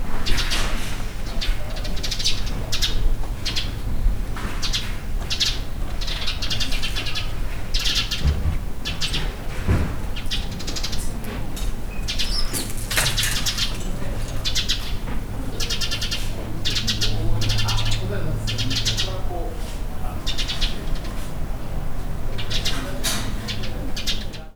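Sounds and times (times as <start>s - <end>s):
bird: 0.1s - 21.4s, 22.3s - 24.5s.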